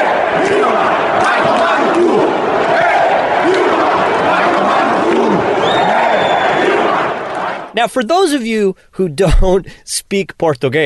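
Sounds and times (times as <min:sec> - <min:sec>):
stadium full of Brazilians chanting: 0:00.0 - 0:07.8
speech: 0:07.8 - 0:10.8.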